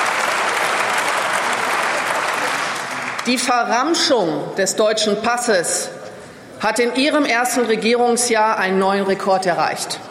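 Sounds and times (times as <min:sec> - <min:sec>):
audience applause in a parliamentary debate in the Bundestag: 0:00.0 - 0:03.3
speech: 0:03.3 - 0:06.0, 0:06.6 - 0:10.1.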